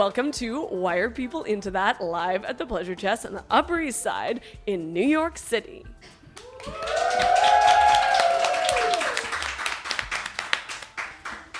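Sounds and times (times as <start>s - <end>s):
speech: 0.0s - 7.5s
studio audience applause: 6.4s - 11.5s.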